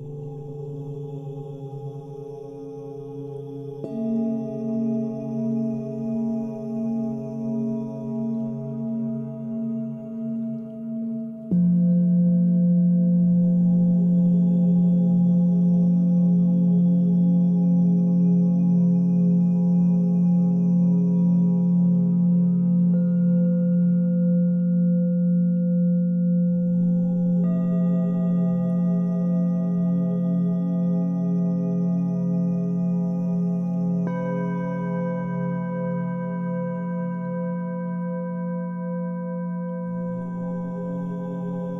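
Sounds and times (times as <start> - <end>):
person chanting OM: 0.0 - 41.7
singing bowls ringing: 0.0 - 41.7.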